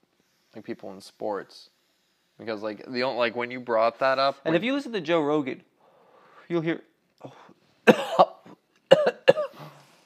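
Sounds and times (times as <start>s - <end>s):
speech: 0.6s - 1.8s, 2.4s - 5.7s, 6.5s - 8.4s
person coughing after vaping: 7.9s - 9.8s.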